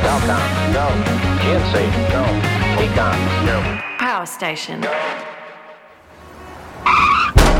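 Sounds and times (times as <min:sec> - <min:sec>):
speech: 0:00.2 - 0:05.4
car tires skidding before a crash: 0:06.2 - 0:07.4.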